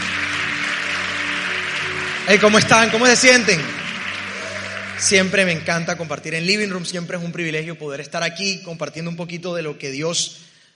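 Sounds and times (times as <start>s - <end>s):
audience applause: 0.0s - 7.0s
speech: 2.3s - 3.8s, 5.0s - 10.5s.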